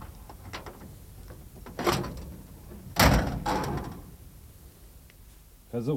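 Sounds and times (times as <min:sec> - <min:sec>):
faint hiss: 0:00.0 - 0:05.9
Studebaker hood being opened by hand: 0:00.3 - 0:04.2.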